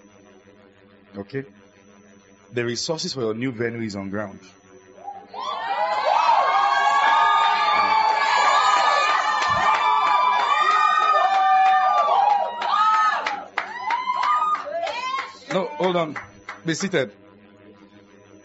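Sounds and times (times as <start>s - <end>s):
speech: 1.1s - 1.6s, 2.5s - 4.6s, 15.8s - 17.2s
audience cheering and shouting: 5.0s - 16.2s
sharp claps: 7.6s - 17.0s.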